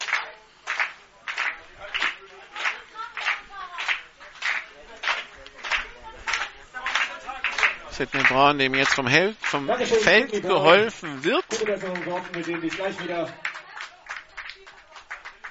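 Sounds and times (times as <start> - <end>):
spectators at an American football game clapping slowly for an injured player: 0.0 - 15.4
speech: 8.0 - 13.4.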